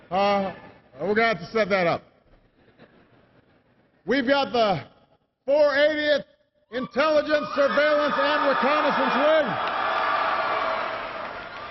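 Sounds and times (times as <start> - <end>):
speech: 0.1 - 2.1, 4.0 - 4.9, 5.5 - 9.8
crowd cheering for Air Force intelligence, surveillance and reconnaissance wing: 7.2 - 11.6.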